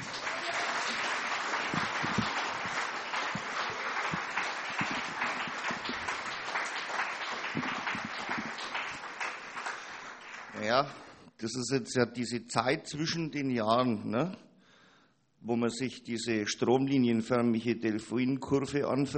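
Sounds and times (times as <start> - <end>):
audience applause for a stage performer: 0.0 - 11.1
speech: 10.7 - 14.5, 15.4 - 19.1.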